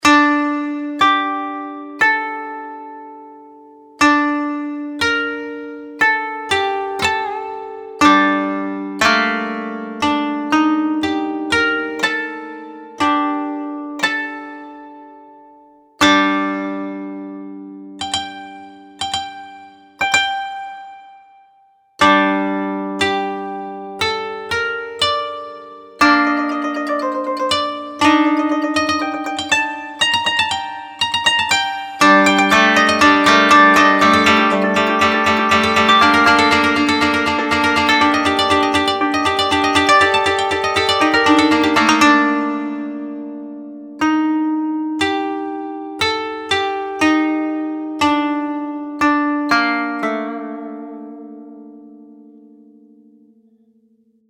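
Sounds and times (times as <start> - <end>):
koto: 0.0 - 21.4, 22.0 - 53.2.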